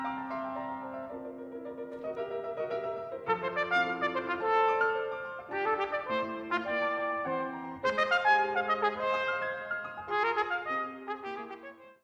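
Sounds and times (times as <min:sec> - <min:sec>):
piano playing allegro: 0:00.0 - 0:12.0
trumpet playing allegro: 0:03.2 - 0:12.0.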